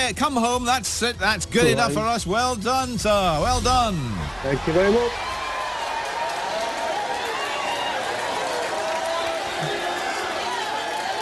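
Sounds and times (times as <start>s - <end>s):
speech: 0.0s - 5.4s
crowd cheer sound effect: 3.3s - 11.1s.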